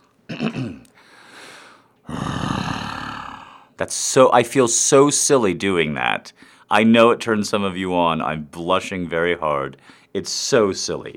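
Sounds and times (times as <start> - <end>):
person imitating a growl: 2.1 - 3.6
speech: 3.8 - 11.1.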